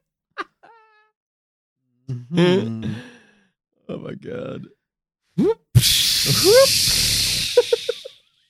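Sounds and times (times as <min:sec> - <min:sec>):
speech: 0:02.1 - 0:03.1, 0:03.9 - 0:04.8, 0:05.4 - 0:07.1
steam hissing from a machine: 0:05.8 - 0:08.1.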